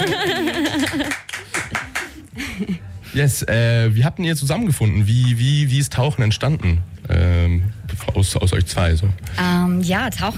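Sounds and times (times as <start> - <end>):
audience applause for a music duo: 0.0 - 2.2
laughter: 0.0 - 2.8
speech: 3.2 - 10.3.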